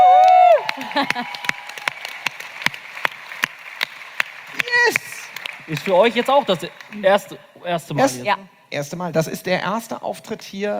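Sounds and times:
audience applause: 0:00.0 - 0:07.3
speech: 0:01.0 - 0:01.6, 0:05.7 - 0:10.7.

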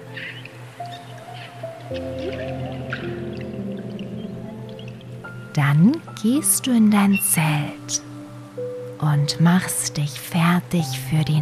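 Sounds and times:
dolphins and whales chirping: 0:00.0 - 0:08.2
constant watery hum: 0:00.0 - 0:11.3
speech: 0:01.9 - 0:03.5, 0:05.6 - 0:08.1, 0:09.0 - 0:11.3.

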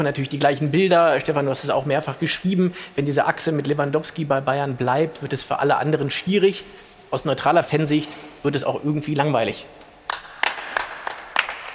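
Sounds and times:
speech: 0:00.0 - 0:09.8
people clapping: 0:10.0 - 0:11.7.

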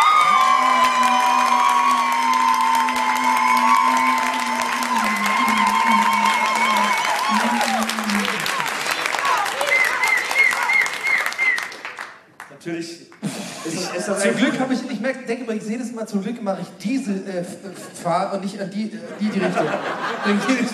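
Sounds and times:
audience applause: 0:00.0 - 0:12.6
laughter: 0:03.5 - 0:10.8, 0:13.2 - 0:14.9, 0:17.4 - 0:20.7
speech: 0:15.5 - 0:20.7.

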